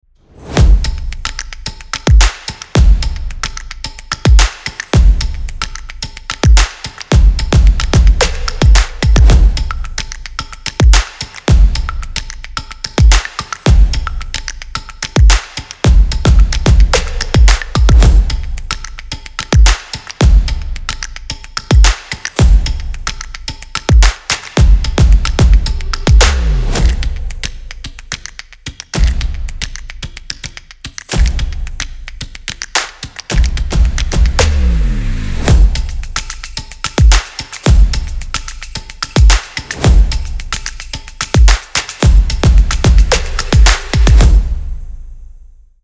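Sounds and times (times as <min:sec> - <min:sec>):
stomping music: 0:00.4 - 0:03.4, 0:04.2 - 0:05.7, 0:06.4 - 0:10.1, 0:10.7 - 0:12.1, 0:12.9 - 0:14.5, 0:15.1 - 0:18.8, 0:19.4 - 0:27.9, 0:29.0 - 0:30.2, 0:31.0 - 0:44.8.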